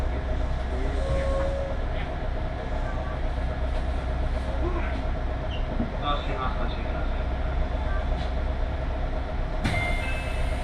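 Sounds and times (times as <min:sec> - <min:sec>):
Tokaido Line local train rolling: 0:00.0 - 0:10.6
faint squeals and clicks: 0:00.9 - 0:02.1.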